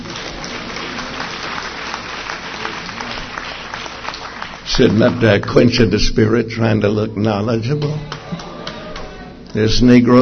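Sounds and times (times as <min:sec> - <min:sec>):
audience clapping: 0:00.0 - 0:05.8, 0:07.2 - 0:10.1
speech: 0:04.7 - 0:08.2, 0:09.6 - 0:10.1.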